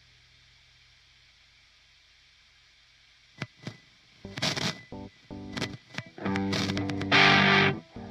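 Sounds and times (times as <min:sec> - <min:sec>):
sharp clicks: 0:03.4 - 0:07.3
electronic keyboard playing distorted stabs and chords in G minor: 0:04.3 - 0:08.0.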